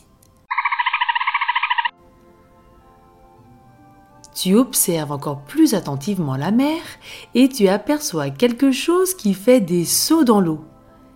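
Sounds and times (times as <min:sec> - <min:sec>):
dolphin call: 0:00.5 - 0:01.9
speech: 0:04.4 - 0:10.7.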